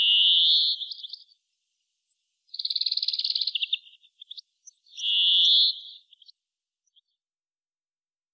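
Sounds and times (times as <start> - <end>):
Chloris chloris: 0.0 - 1.3, 2.5 - 6.3.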